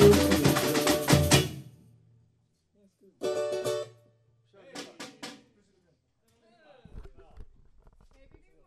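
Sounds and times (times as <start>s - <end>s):
tamborim drumming: 0.0s - 1.8s, 4.7s - 5.6s.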